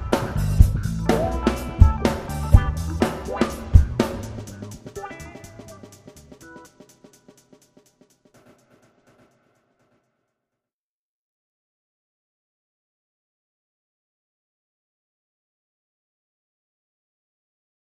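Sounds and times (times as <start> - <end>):
funk music: 0.0 - 7.5.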